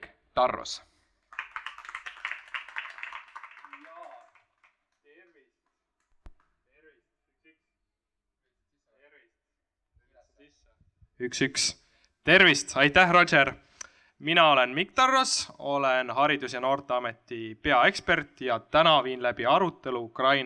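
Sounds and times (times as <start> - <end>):
speech: 0.4 - 0.9, 11.2 - 13.6, 14.2 - 20.4
audience applause: 1.3 - 4.8.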